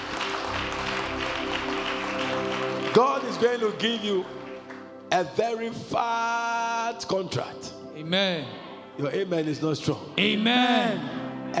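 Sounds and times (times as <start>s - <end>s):
crowd clapping: 0.0s - 5.0s
sustained low instrumental tones: 0.1s - 11.5s
speech: 2.9s - 4.4s, 5.1s - 11.5s.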